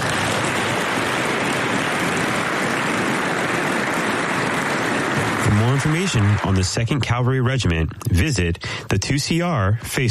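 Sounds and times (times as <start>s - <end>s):
crowd applause: 0.0s - 7.8s
speech: 5.8s - 10.1s.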